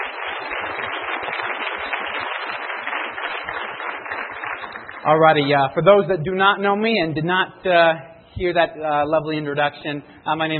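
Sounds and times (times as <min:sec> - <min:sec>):
audience applause: 0:00.0 - 0:05.7
speech: 0:05.0 - 0:10.5.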